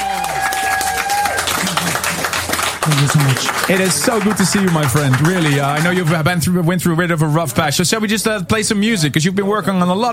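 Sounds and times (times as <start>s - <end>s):
crowd applause: 0.0s - 6.4s
speech: 2.9s - 10.1s.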